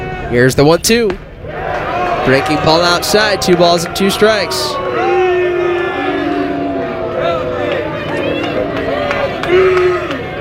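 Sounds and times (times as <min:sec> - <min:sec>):
speech: 0:00.3 - 0:01.3, 0:02.2 - 0:04.8
baseball stadium crowd booing and shouting in disapproval: 0:01.4 - 0:10.4.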